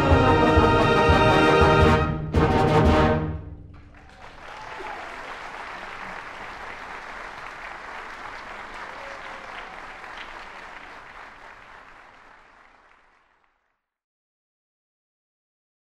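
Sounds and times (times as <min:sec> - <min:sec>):
symphonic band playing a Christmas march: 0:00.0 - 0:03.6.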